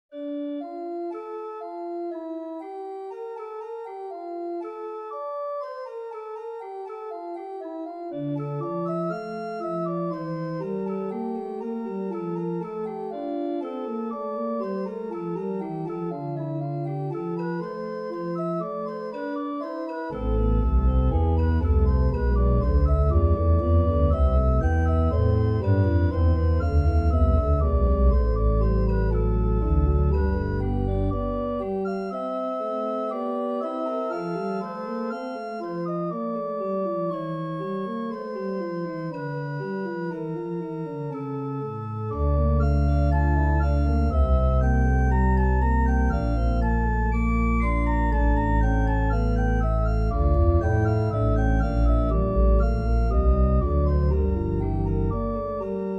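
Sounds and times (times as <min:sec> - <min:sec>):
organ prelude in D minor: 0:00.1 - 0:55.9.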